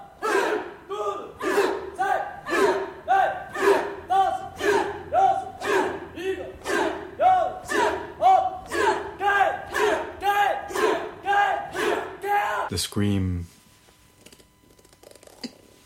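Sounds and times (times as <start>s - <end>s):
crowd screaming in unison: 0.2s - 12.7s
speech: 12.8s - 13.6s.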